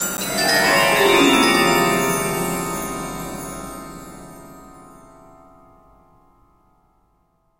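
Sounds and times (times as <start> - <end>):
saloon music stinger: 0.3 - 5.2.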